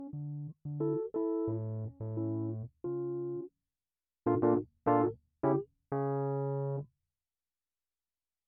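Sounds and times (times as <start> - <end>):
keyboard music: 0.0 - 3.5, 4.3 - 6.8.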